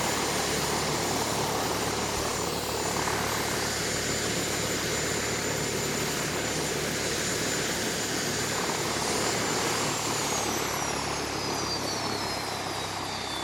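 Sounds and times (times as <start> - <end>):
Bell UH1 Iroquois helicopter landing and shutting down: 0.0 - 13.4.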